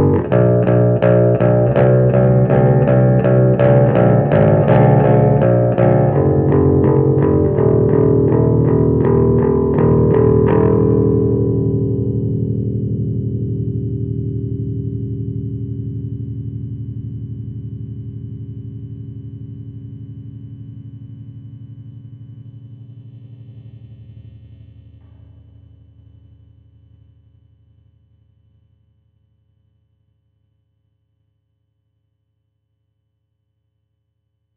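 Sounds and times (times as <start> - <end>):
bass requiem music: 0.0 - 16.2.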